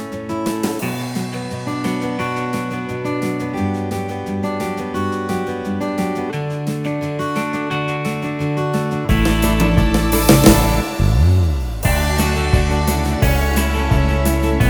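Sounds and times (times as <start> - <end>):
guitar ballad: 0.0 - 14.6.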